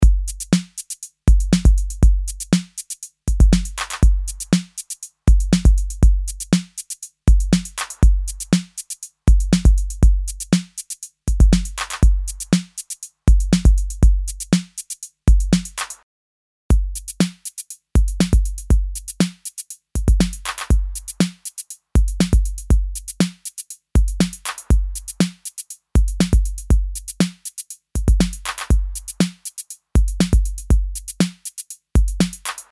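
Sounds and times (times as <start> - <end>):
full drum loop: 0.0 - 16.0, 16.7 - 32.7.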